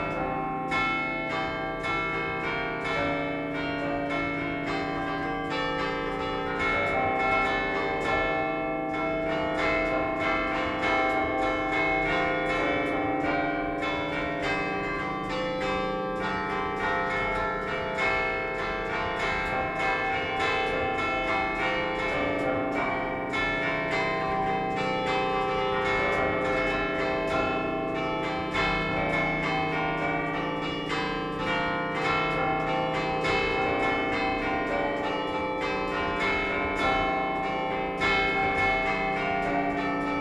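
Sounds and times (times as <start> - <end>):
San Cipriano church bells in Liguria Genova: 0.0 - 40.1.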